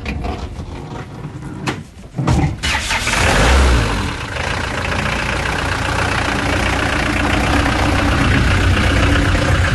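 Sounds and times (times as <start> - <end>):
old gendarmerie van engine starting and running: 2.2 - 9.7.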